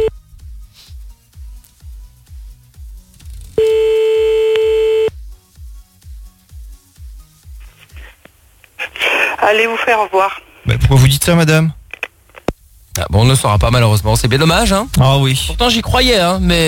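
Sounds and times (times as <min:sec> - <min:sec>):
telephone being redialed with low beeping pulses: 0:03.6 - 0:05.1
speech: 0:09.5 - 0:11.8, 0:13.0 - 0:16.6.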